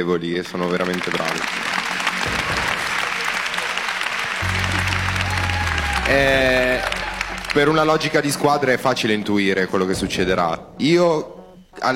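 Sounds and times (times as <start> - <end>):
speech: 0.0 - 2.4, 6.1 - 7.0, 7.6 - 11.9
audience applause: 0.4 - 8.4
low droning hum: 4.4 - 8.7
sustained musical tones: 4.4 - 9.5.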